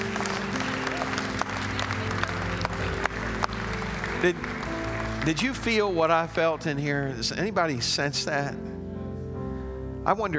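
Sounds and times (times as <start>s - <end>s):
audience applause: 0.0s - 7.2s
speech: 4.2s - 4.6s, 5.2s - 8.8s, 10.0s - 10.3s.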